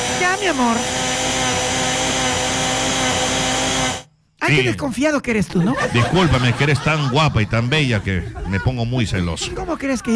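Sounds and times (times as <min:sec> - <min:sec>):
blender running: 0:00.0 - 0:04.1
speech: 0:00.4 - 0:01.6, 0:04.5 - 0:10.1
laughter: 0:05.6 - 0:10.1.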